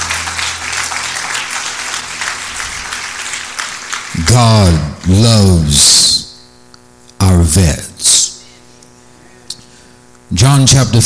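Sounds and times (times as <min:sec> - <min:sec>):
audience clapping hands: 0:00.0 - 0:05.8
speech: 0:04.3 - 0:06.2, 0:07.6 - 0:07.8, 0:10.4 - 0:11.0.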